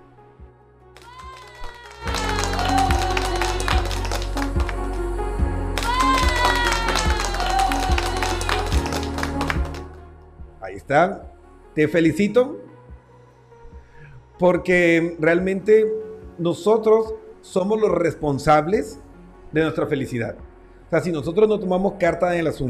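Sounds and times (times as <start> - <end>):
applause: 1.0 - 5.1, 5.7 - 10.0
speech: 10.9 - 12.7, 14.4 - 22.6.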